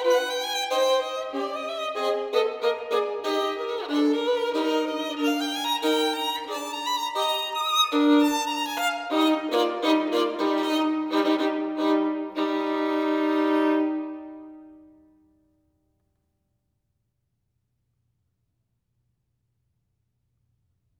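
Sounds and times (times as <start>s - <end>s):
classical caprice in E-flat major: 0.0s - 15.1s.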